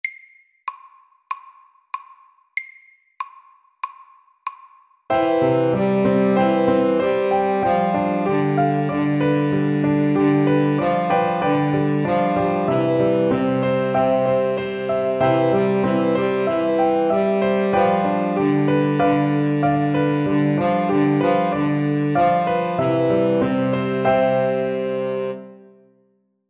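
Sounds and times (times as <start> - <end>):
Welsh melody: 5.1 - 25.6.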